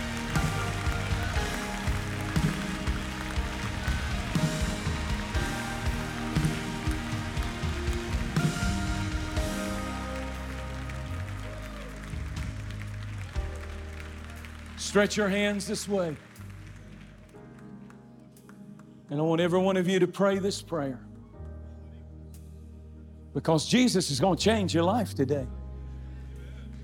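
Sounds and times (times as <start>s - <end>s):
audience clapping hands: 0.0s - 19.1s
speech: 14.9s - 16.3s, 19.1s - 21.1s, 23.4s - 25.6s.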